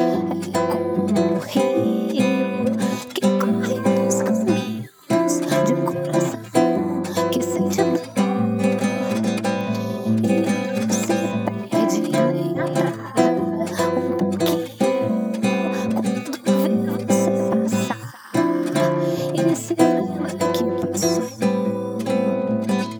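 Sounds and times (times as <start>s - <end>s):
guitar: 0.0s - 22.9s.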